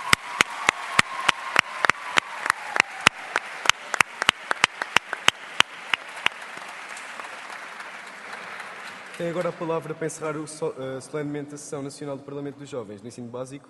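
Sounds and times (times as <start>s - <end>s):
audience applause: 0.0s - 10.0s
speech: 9.2s - 13.6s.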